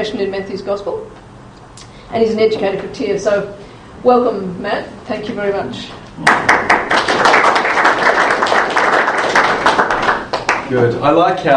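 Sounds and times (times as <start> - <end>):
speech: 0.0 - 1.2, 2.1 - 6.7, 10.7 - 11.5
audience clapping: 6.2 - 10.8.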